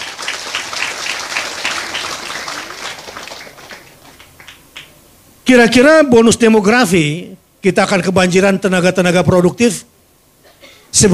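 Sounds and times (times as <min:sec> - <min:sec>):
audience applause: 0:00.0 - 0:04.9
speech: 0:05.5 - 0:09.9, 0:10.9 - 0:11.1.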